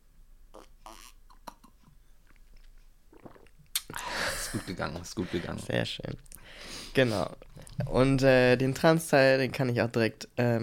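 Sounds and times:
person drinking with wet mouth sounds and swallowing gulps: 0.6 - 4.7
speech: 4.5 - 10.6.

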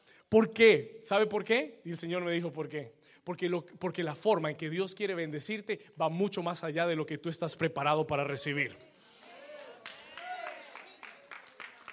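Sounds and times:
speech: 0.3 - 8.9
sparse applause from a few people: 9.2 - 11.9.

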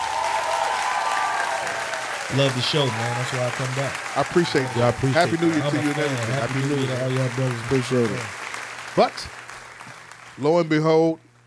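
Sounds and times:
hand claps: 0.0 - 10.5
speech: 2.3 - 8.4, 9.0 - 9.4, 10.4 - 11.2.

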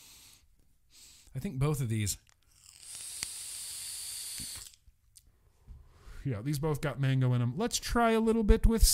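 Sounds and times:
speech: 1.4 - 2.3, 6.3 - 8.9
hiss of someone vaping: 2.5 - 4.8.

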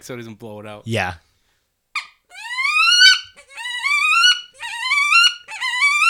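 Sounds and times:
speech: 0.0 - 1.3
hen wood duck call imitated: 2.0 - 6.0.

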